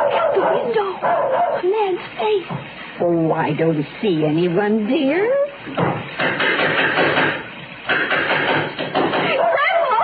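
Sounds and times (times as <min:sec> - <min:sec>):
speech: 0:00.5 - 0:08.1
knocking at a door: 0:05.7 - 0:09.4.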